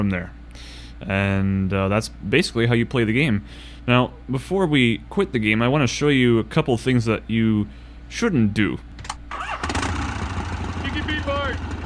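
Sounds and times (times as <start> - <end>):
speech: 0.0 - 9.6
video game motorcycle engine starting and rumbling: 9.0 - 11.8.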